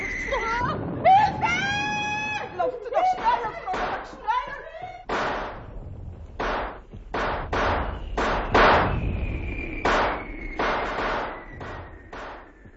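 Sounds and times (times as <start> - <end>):
fireworks crackling bangs: 0.0 - 12.7
fireworks thin high whistle: 7.8 - 12.7.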